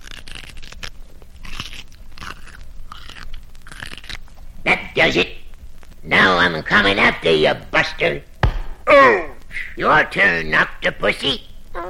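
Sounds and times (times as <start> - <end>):
crunchy chewing of sea spinach: 0.0 - 6.3
speech: 5.0 - 5.4, 6.1 - 8.3, 8.9 - 11.5.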